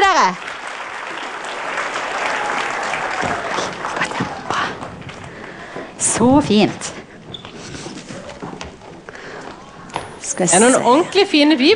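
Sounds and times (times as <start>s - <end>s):
speech: 0.0s - 0.5s, 6.2s - 7.0s, 10.4s - 11.7s
group clapping: 0.0s - 6.1s.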